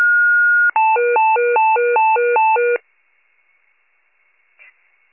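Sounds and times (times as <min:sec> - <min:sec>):
fire pager alert: 0:00.1 - 0:02.8.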